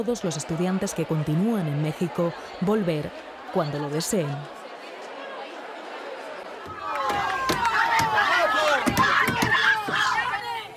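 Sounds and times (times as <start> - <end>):
speech: 0.0 - 4.6
crowd shouting at arriving Guardia Civil van in Hornachos: 0.0 - 10.7.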